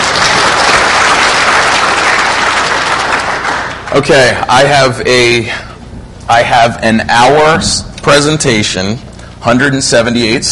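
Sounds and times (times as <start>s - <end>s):
audience applause: 0.0s - 4.4s
speech: 3.9s - 5.7s, 6.3s - 10.5s.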